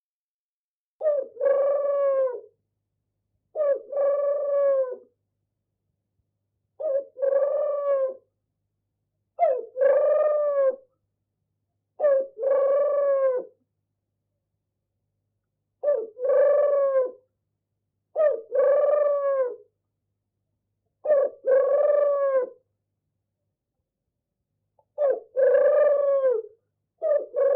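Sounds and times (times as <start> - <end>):
turtle dove purring coo: 1.0 - 2.5, 3.6 - 5.1, 6.8 - 8.3, 9.4 - 10.8, 12.0 - 13.6, 15.8 - 17.2, 18.2 - 19.6, 21.0 - 22.6, 24.9 - 27.5.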